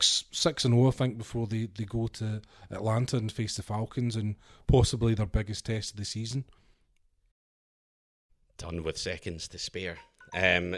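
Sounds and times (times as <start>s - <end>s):
speech: 0.4s - 6.6s, 8.6s - 10.7s
electronic alarm chime: 10.0s - 10.6s.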